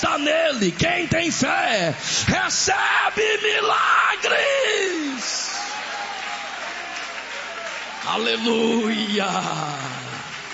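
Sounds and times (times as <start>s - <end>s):
speech: 0.0s - 5.4s, 8.0s - 10.2s
audience applause: 5.1s - 10.5s.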